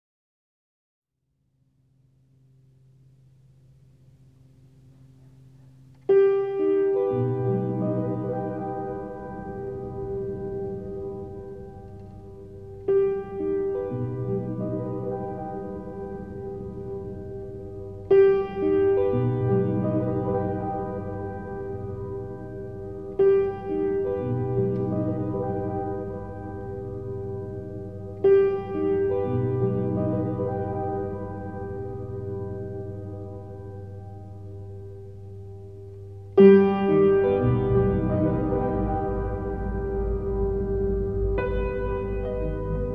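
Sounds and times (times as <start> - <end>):
piano: 2.3 - 42.9.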